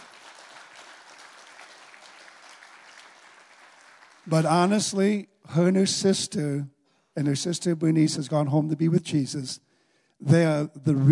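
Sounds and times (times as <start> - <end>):
audience applause: 0.0 - 4.8
speech: 4.2 - 11.0.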